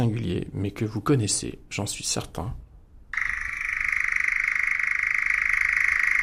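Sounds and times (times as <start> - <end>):
speech: 0.0 - 2.6
European nightjar churring call: 3.2 - 6.2.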